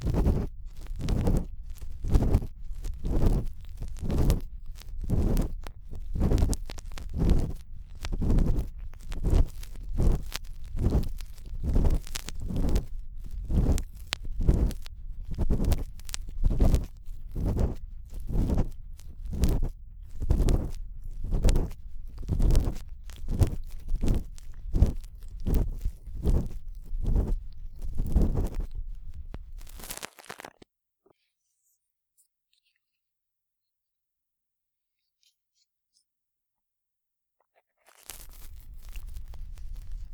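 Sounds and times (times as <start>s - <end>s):
ear pick scraping deep in the ear: 0.0s - 30.0s, 38.1s - 40.1s.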